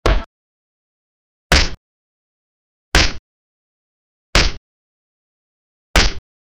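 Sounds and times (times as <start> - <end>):
fury of punches: 0.0 - 0.3, 1.5 - 1.8, 3.0 - 3.2, 4.4 - 4.6, 6.0 - 6.2.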